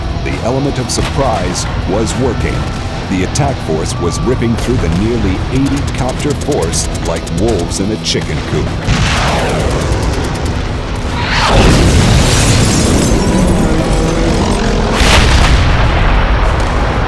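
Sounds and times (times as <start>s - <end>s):
speech: 0.2s - 10.0s
heavy shell explosions: 4.8s - 17.0s
artillery barrage: 8.8s - 17.0s.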